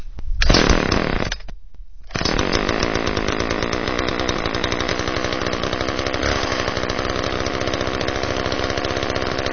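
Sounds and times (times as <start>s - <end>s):
chainsaw: 0.5s - 1.4s, 2.1s - 9.5s.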